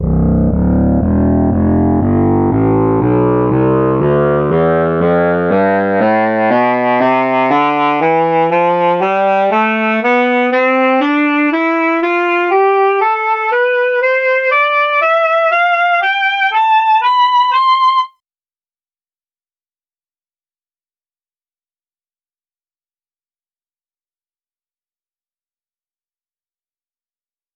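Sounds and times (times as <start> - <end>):
alto saxophone playing a scale: 0.0 - 18.2.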